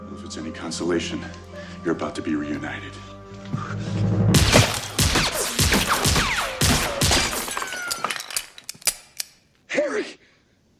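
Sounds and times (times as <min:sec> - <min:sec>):
speech: 0:00.2 - 0:04.5
heavy impacts: 0:03.9 - 0:07.7
gunfire in a film shootout: 0:04.4 - 0:08.1
shattering: 0:04.4 - 0:09.4.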